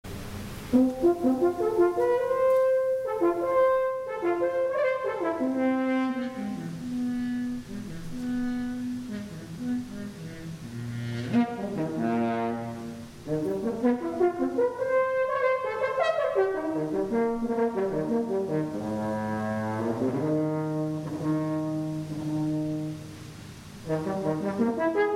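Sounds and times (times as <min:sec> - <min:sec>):
French horn playing an offertory: 0:00.6 - 0:25.1.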